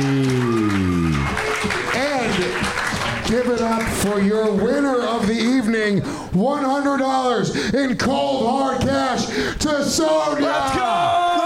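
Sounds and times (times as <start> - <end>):
audience applause: 0.0 - 5.1
speech: 3.3 - 11.2.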